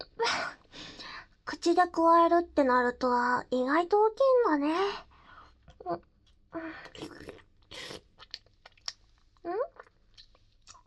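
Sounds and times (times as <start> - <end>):
speech: 1.6 - 5.1, 5.8 - 8.0
someone chewing and crunching food at a family restaurant: 6.8 - 10.8.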